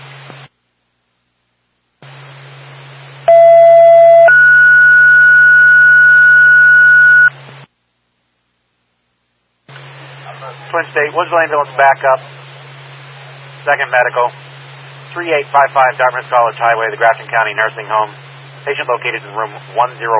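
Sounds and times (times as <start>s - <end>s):
radio dispatch paging tone: 3.3s - 7.3s
speech: 10.9s - 12.4s, 13.6s - 14.4s, 15.1s - 20.1s.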